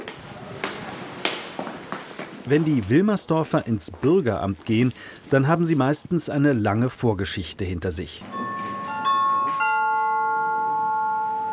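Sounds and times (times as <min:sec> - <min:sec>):
speech: 0:02.5 - 0:08.6
waiting-room number call chime: 0:08.3 - 0:11.5.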